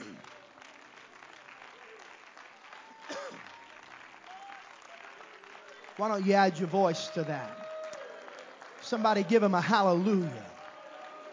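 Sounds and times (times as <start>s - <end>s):
audience clapping hands: 0.0s - 11.3s
speech: 6.0s - 7.7s, 8.9s - 10.5s.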